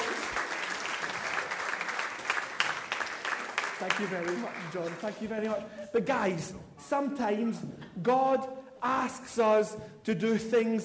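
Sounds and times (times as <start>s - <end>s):
audience applause: 0.0s - 5.6s
speech: 3.8s - 10.8s.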